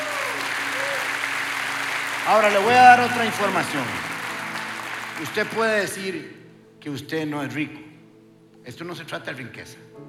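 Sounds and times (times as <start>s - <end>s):
large crowd applauding: 0.0s - 6.2s
speech: 2.3s - 4.1s, 5.2s - 7.9s, 8.6s - 9.9s.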